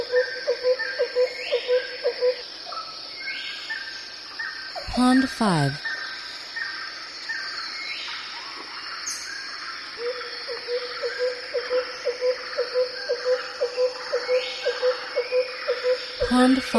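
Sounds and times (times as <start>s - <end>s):
bird calls in a dense chorus: 0.0s - 16.7s
steady high insect drone: 0.0s - 16.7s
speech: 5.0s - 5.8s, 16.4s - 16.7s
low note repeated evenly: 16.2s - 16.7s.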